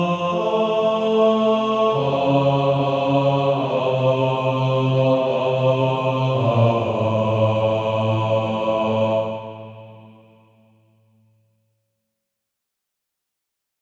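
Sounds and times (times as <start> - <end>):
male choir singing: 0.0 - 10.5.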